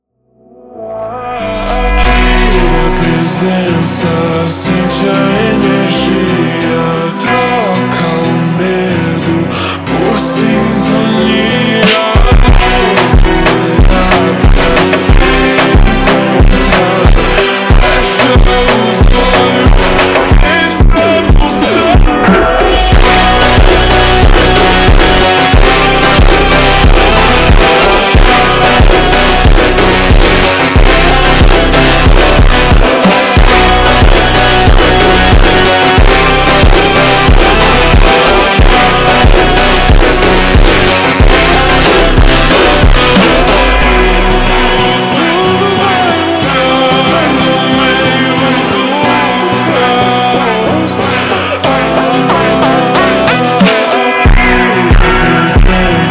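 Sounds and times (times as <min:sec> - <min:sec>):
slowed montagem funk music: 0:00.4 - 0:56.0.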